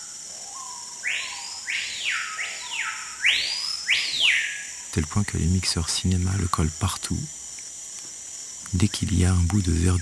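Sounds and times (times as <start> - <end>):
small tropical forest bird singing: 0.0 - 4.8
speech: 5.0 - 7.4, 8.7 - 9.9.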